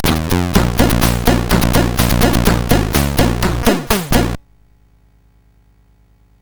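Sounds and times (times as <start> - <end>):
game music on SID CSG8580R5 chip: 0.0 - 4.4.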